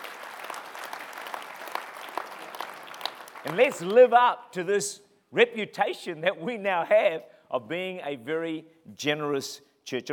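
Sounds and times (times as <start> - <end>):
audience applause: 0.0 - 4.0
speech: 3.4 - 10.1.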